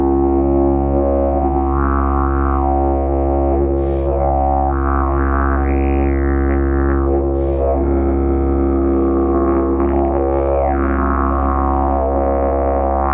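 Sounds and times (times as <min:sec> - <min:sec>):
ash wood didgeridoo with flared bell: 0:00.0 - 0:13.1.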